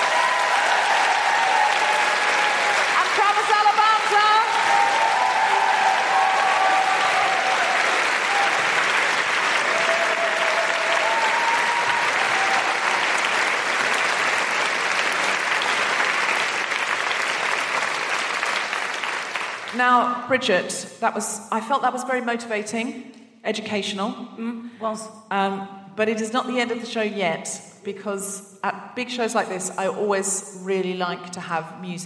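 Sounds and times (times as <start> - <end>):
whistles and cheers: 0.0 - 3.0, 4.4 - 13.5
audience applause: 0.0 - 19.8
speech: 20.3 - 32.0.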